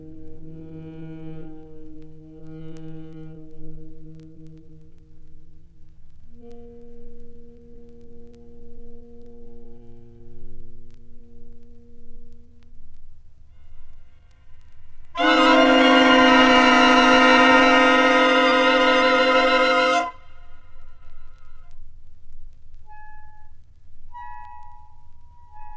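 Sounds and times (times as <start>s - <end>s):
saxophone orchestra: 15.2s - 20.2s.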